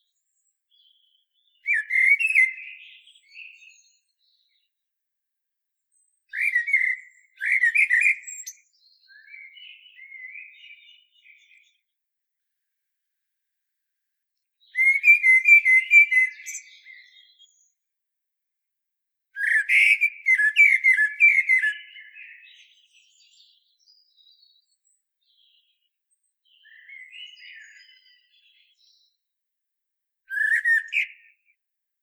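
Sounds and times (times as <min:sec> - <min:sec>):
common blackbird singing: 0:00.0 - 0:04.7, 0:05.9 - 0:11.9, 0:14.6 - 0:17.8, 0:19.4 - 0:29.2, 0:30.3 - 0:31.5.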